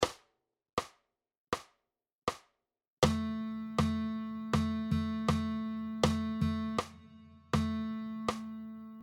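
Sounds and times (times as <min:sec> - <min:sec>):
guitar playing rhythm dictation exercises: 0:03.0 - 0:09.0.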